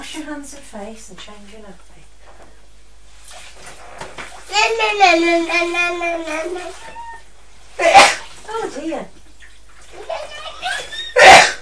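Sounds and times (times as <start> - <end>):
speech: 0.2 - 2.5, 4.5 - 7.0, 7.8 - 9.2
woman sneezing: 7.8 - 8.3, 11.2 - 11.6
laughter: 10.0 - 11.3.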